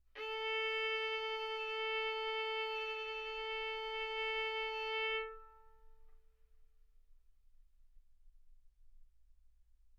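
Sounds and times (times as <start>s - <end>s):
violin arco on A string: 0.1s - 6.1s.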